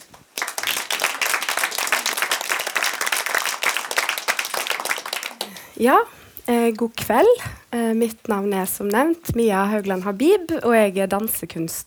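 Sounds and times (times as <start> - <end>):
audience applause: 0.0 - 6.1
speech: 5.8 - 11.8.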